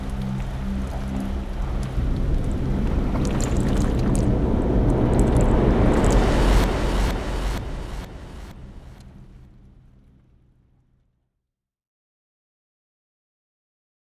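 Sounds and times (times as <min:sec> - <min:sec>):
haunting Halloween rain: 0:00.0 - 0:10.2.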